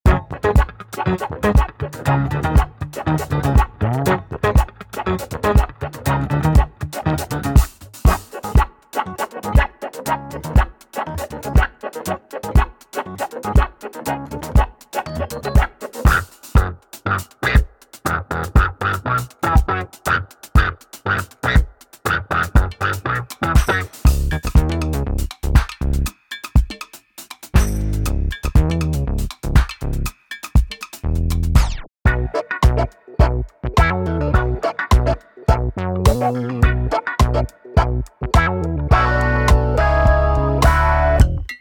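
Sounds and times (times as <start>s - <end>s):
golden age funk music: 0.0s - 41.5s.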